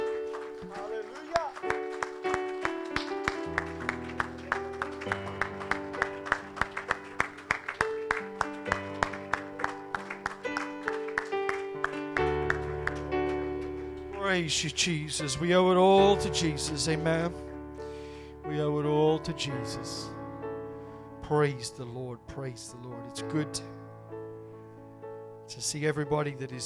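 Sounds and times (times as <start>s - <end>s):
audience clapping in rhythm: 0.0s - 15.4s
sustained keyboard or organ chords: 0.0s - 26.6s
speech: 14.4s - 17.4s, 19.3s - 20.2s, 21.3s - 23.7s, 25.5s - 26.6s.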